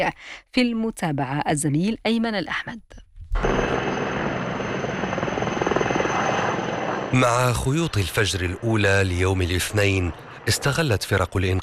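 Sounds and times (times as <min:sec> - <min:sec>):
speech: 0:00.0 - 0:03.8, 0:07.1 - 0:11.6
firefighting helicopter rotor chopping overhead: 0:03.4 - 0:11.5.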